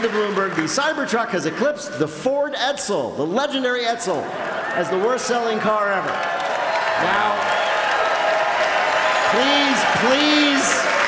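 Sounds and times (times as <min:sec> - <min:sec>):
audience clapping: 0:00.0 - 0:01.7, 0:04.2 - 0:11.0
speech: 0:00.0 - 0:06.4, 0:07.0 - 0:07.6, 0:09.3 - 0:10.7.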